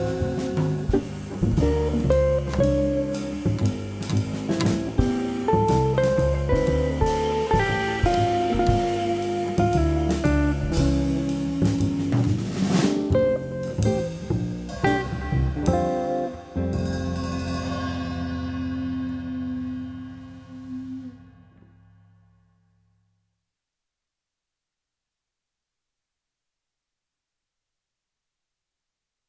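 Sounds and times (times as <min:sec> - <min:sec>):
guitar: 0:00.0 - 0:21.1.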